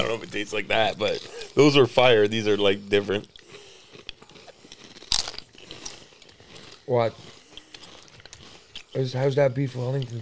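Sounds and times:
snack chips crunching and chewing: 0:00.0 - 0:10.2
speech: 0:00.1 - 0:03.4, 0:06.9 - 0:07.3, 0:09.0 - 0:10.2.

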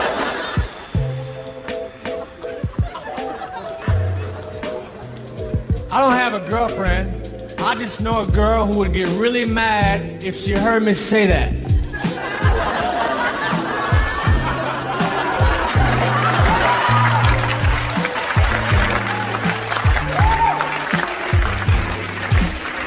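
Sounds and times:
laughter: 0:00.0 - 0:01.0, 0:02.2 - 0:05.0, 0:11.9 - 0:17.6
speech: 0:06.0 - 0:11.7
audience applause: 0:12.2 - 0:22.8.

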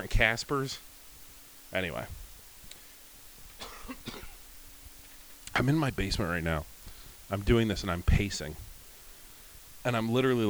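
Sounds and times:
speech: 0:00.0 - 0:00.9, 0:01.7 - 0:02.2, 0:05.6 - 0:06.7, 0:07.3 - 0:08.7, 0:09.8 - 0:10.4
person coughing: 0:03.6 - 0:04.4.

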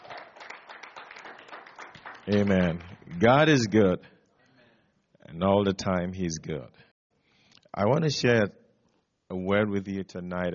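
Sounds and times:
audience clapping hands: 0:00.0 - 0:03.6
speech: 0:02.3 - 0:04.2, 0:05.3 - 0:06.8, 0:07.7 - 0:08.6, 0:09.3 - 0:10.5.

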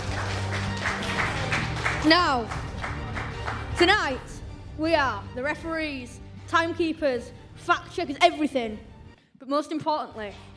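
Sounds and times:
audience applause: 0:00.0 - 0:03.9
speech: 0:02.0 - 0:02.6, 0:03.8 - 0:10.5.

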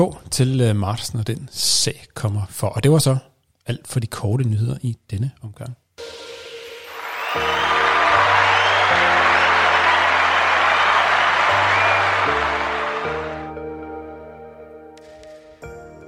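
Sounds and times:
speech: 0:00.0 - 0:06.3
crowd applause: 0:06.0 - 0:13.5
bouncy bass-heavy music jingle: 0:06.0 - 0:15.0.

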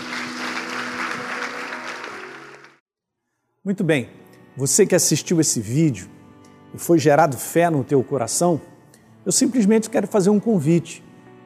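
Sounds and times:
audience applause: 0:00.0 - 0:02.8
speech: 0:03.6 - 0:11.4.

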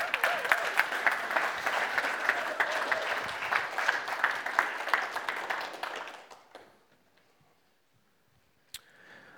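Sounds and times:
audience applause: 0:00.0 - 0:06.8.

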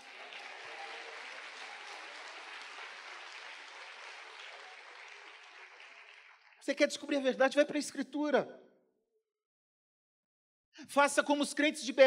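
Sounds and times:
audience applause: 0:00.0 - 0:06.7
speech: 0:06.6 - 0:08.7, 0:10.9 - 0:12.0.

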